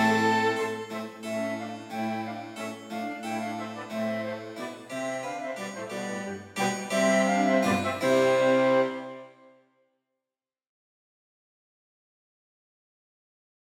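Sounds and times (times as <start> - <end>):
harpsichord playing a passepied: 0.0 - 9.3
cello playing a passepied: 0.0 - 9.5
violin playing a passepied: 0.0 - 9.5
flute playing a passepied: 0.0 - 9.6.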